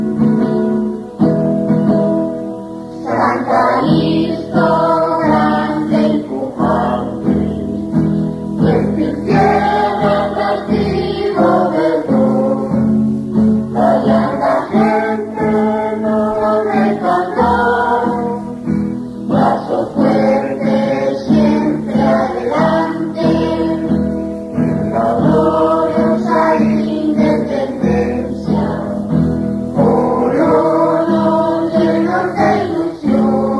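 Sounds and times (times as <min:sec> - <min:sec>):
hymn: 0:00.2 - 0:33.5.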